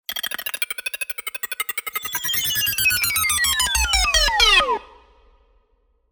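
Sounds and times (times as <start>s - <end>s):
computer data processing sounds: 1.1s - 4.9s.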